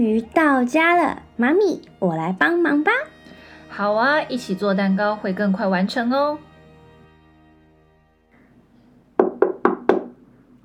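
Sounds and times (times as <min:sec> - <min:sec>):
speech: 0:00.0 - 0:03.1, 0:03.7 - 0:06.5
knocking on a door: 0:09.2 - 0:10.2.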